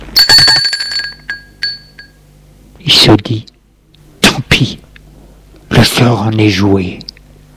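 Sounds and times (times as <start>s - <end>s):
doorbell ringing: 0.2s - 2.2s
speech: 2.9s - 3.5s, 4.6s - 4.8s, 5.8s - 7.0s.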